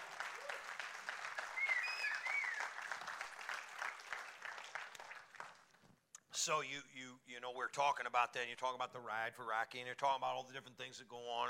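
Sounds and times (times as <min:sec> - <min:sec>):
audience applause: 0:00.0 - 0:05.8
speech: 0:06.4 - 0:11.4.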